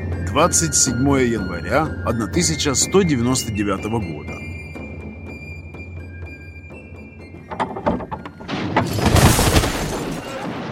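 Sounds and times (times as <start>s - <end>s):
speech: 0.4s - 4.4s
door kicked open: 7.5s - 10.4s.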